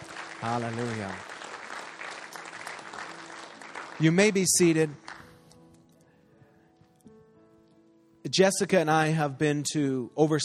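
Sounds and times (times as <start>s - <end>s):
audience applause: 0.0s - 5.3s
speech: 0.4s - 1.3s, 4.0s - 5.0s, 8.3s - 10.4s.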